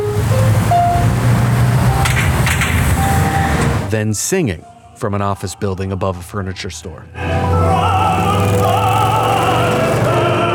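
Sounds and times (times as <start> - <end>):
street traffic rumble: 0.0 - 3.9, 7.2 - 10.5
speech: 3.9 - 8.7.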